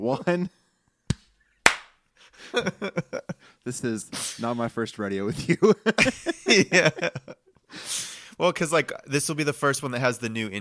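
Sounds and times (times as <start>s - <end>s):
speech: 0.0s - 0.6s, 2.4s - 10.5s
single hand clap: 1.1s - 2.0s
laughter: 2.3s - 3.4s, 5.2s - 7.5s.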